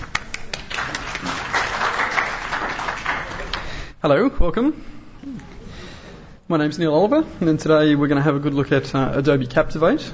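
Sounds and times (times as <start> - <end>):
audience applause welcoming a presenter: 0.0 - 3.8
speech: 4.0 - 5.5, 6.5 - 10.1.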